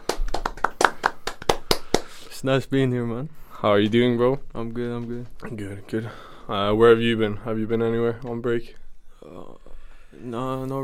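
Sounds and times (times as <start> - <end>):
round of applause: 0.0 - 2.2
speech: 2.4 - 10.8.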